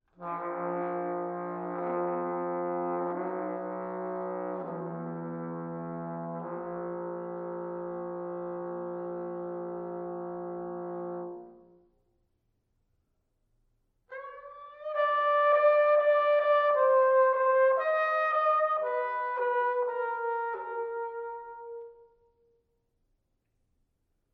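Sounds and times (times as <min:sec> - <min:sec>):
solo trumpet etudes: 0:00.0 - 0:12.0, 0:14.1 - 0:22.6.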